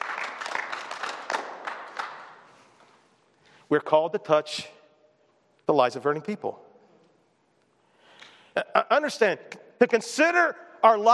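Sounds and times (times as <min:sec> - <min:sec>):
group clapping: 0:00.0 - 0:02.9
speech: 0:03.7 - 0:04.8, 0:05.7 - 0:06.6, 0:08.6 - 0:11.1.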